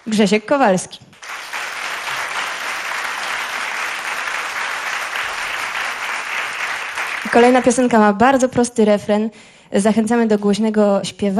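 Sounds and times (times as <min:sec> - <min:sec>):
speech: 0:00.1 - 0:01.1, 0:07.4 - 0:11.3
crowd applauding: 0:01.2 - 0:07.9.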